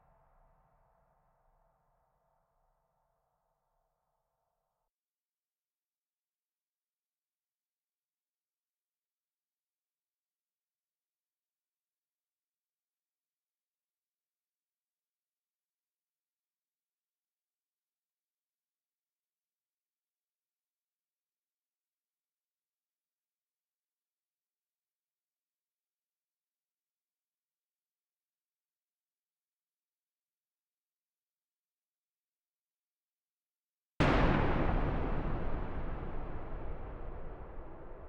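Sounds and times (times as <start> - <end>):
thunder clap: 34.0 - 38.0.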